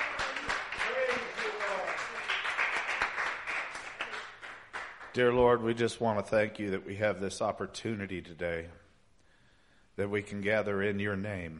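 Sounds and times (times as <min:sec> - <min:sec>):
crowd cheering and clapping: 0:00.0 - 0:05.1
speech: 0:05.2 - 0:08.8, 0:10.0 - 0:11.5.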